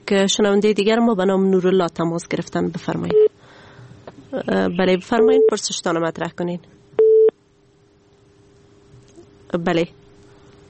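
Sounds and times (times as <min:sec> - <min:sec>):
speech: 0:00.1 - 0:03.3, 0:04.3 - 0:06.8, 0:09.5 - 0:10.0
faint steady low phone line hum: 0:04.3 - 0:06.4, 0:07.0 - 0:07.4
busy-signal beep on a phone line after a call-in listener was cut off: 0:07.0 - 0:07.3.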